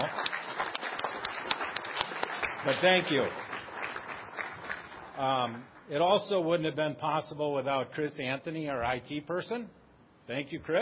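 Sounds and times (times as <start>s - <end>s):
audience applause: 0.0s - 5.6s
speech: 2.6s - 3.4s, 5.2s - 10.7s.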